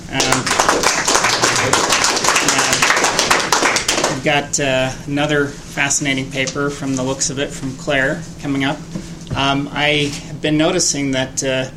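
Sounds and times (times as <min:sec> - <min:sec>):
crowd applauding: 0:00.2 - 0:04.2
speech: 0:04.2 - 0:11.7.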